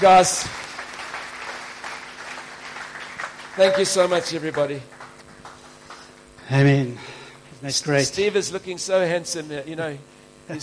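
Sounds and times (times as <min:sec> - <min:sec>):
speech: 0:00.0 - 0:00.6, 0:03.6 - 0:05.0, 0:06.5 - 0:10.6
congregation clapping during a worship service: 0:00.0 - 0:06.4.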